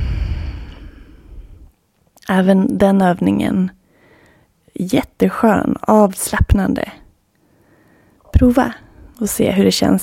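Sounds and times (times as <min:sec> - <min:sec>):
slow exhale: 0:00.0 - 0:01.7, 0:07.4 - 0:09.1
speech: 0:02.3 - 0:03.8, 0:04.8 - 0:07.0, 0:08.4 - 0:10.0.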